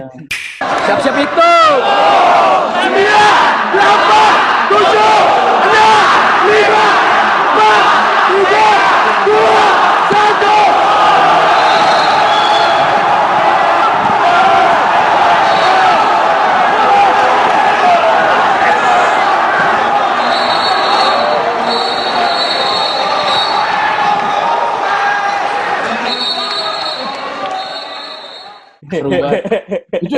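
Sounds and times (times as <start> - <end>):
speech: 0.0 - 7.1
crowd cheering at moment of victory: 0.4 - 29.3
sharp whistles: 11.6 - 12.8, 20.2 - 23.7, 26.0 - 28.8
laughter: 28.8 - 30.1.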